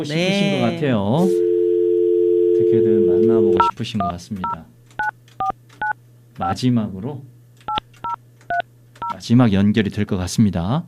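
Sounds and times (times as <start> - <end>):
speech: 0.0 - 1.5, 2.7 - 4.8, 6.4 - 7.3, 9.2 - 10.8
low steady hum: 0.0 - 10.0
telephone keypad tones dialing out: 3.0 - 6.6, 7.7 - 9.2.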